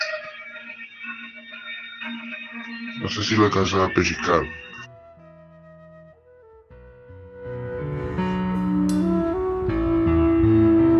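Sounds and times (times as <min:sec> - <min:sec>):
speech: 0:03.0 - 0:04.6
Farfisa organ playing at a rock concert: 0:04.9 - 0:10.9.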